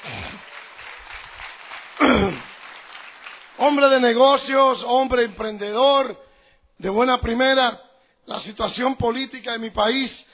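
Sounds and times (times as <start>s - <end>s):
audience applause: 0.0s - 4.1s
speech: 3.6s - 6.2s, 6.8s - 10.3s.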